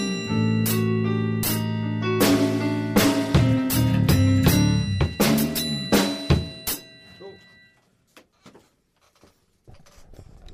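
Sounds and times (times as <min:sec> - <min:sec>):
freygish-mode band interlude: 0:00.0 - 0:06.5.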